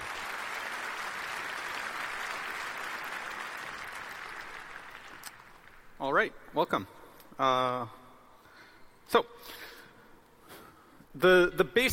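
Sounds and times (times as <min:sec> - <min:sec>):
audience applause: 0:00.0 - 0:06.0
speech: 0:06.0 - 0:08.0, 0:09.1 - 0:09.7, 0:11.2 - 0:11.9.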